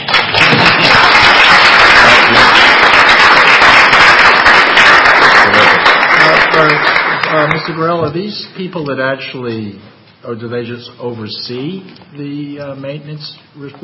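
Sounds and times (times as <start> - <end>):
audience applause: 0.0 - 7.9
speech: 6.6 - 13.8.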